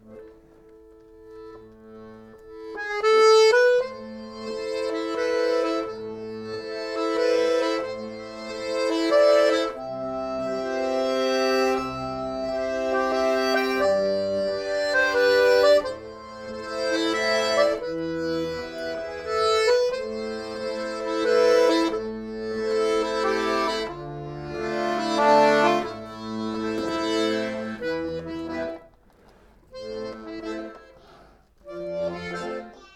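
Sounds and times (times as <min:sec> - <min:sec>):
accordion accompaniment: 0:00.0 - 0:32.9.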